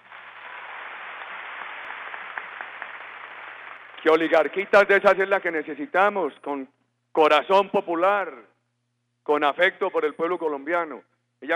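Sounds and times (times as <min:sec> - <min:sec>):
audience applause: 0:00.0 - 0:04.0
speech: 0:04.0 - 0:08.5, 0:09.3 - 0:11.5.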